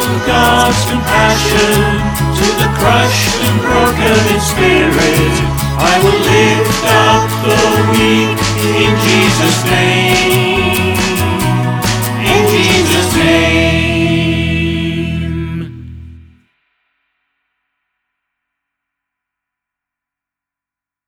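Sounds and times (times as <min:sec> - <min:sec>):
choir singing: 0:00.0 - 0:15.9.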